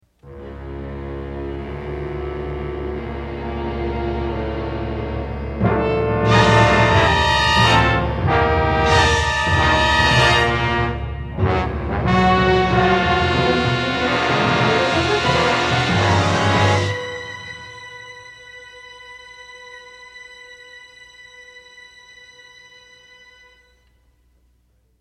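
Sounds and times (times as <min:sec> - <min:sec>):
stereo band track with effects: 0:00.3 - 0:18.3.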